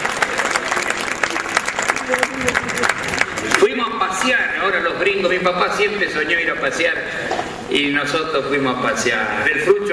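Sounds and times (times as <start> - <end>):
audience applause: 0.0 - 4.3
speech: 3.9 - 9.9.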